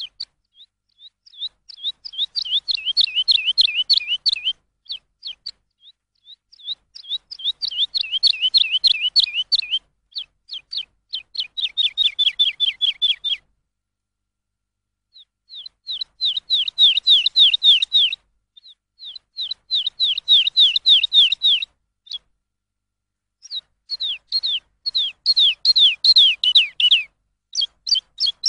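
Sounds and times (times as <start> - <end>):
lark song: 0.0 - 13.6, 15.1 - 22.3, 23.4 - 28.4.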